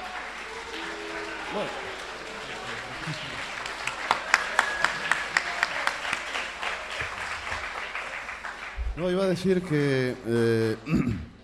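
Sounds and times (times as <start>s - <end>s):
laughter: 0.0s - 8.2s
audience applause: 0.0s - 10.1s
speech: 1.5s - 1.9s, 3.1s - 3.5s, 9.0s - 11.3s.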